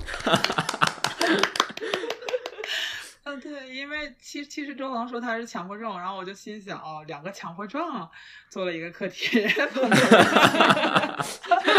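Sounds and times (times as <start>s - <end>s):
laughter: 0.0s - 2.8s, 9.2s - 11.7s
applause: 0.0s - 3.1s
speech: 0.3s - 0.7s, 3.4s - 11.7s.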